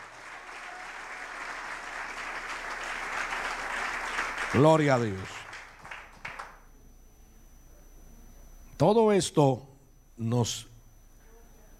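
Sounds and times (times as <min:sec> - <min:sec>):
audience applause: 0:00.0 - 0:06.6
speech: 0:04.5 - 0:05.4, 0:08.8 - 0:10.7.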